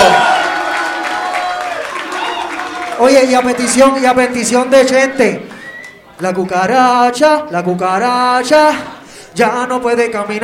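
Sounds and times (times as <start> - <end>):
audience applause: 0.0 - 4.0
speech: 3.0 - 5.6, 6.2 - 10.4.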